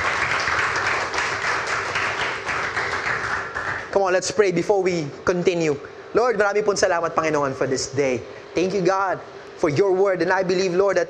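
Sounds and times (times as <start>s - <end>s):
church congregation clapping: 0.0s - 4.0s
speech: 4.0s - 11.0s.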